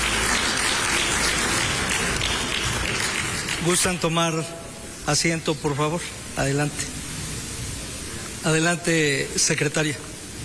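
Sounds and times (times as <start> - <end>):
applause: 0.0 - 4.1
speech: 3.6 - 7.0, 8.4 - 10.1.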